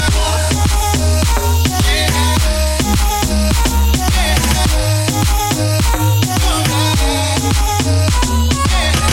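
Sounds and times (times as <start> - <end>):
funk music: 0.0 - 9.1.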